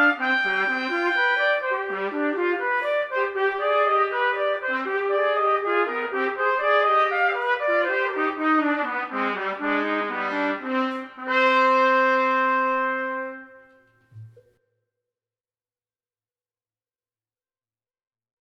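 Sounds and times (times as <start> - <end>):
trumpet duet: 0.0 - 14.4.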